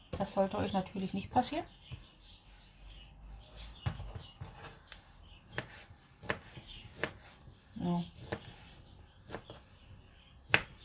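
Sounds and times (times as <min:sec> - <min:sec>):
speech: 0:00.2 - 0:02.4, 0:07.8 - 0:08.2
knife chopping vegetables on a board: 0:05.5 - 0:07.6, 0:08.2 - 0:10.8.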